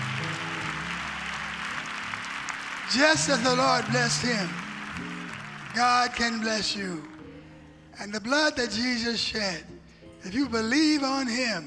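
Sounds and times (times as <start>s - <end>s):
audience clapping hands: 0.0s - 7.4s
low sustained musical tones: 0.0s - 11.6s
speech: 2.9s - 5.1s, 5.8s - 7.1s, 8.0s - 11.6s.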